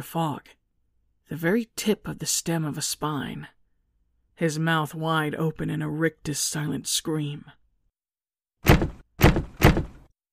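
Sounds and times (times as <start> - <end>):
speech: 0.0 - 0.6, 1.3 - 3.6, 4.4 - 7.6
heavy thuds on a door: 8.6 - 10.1.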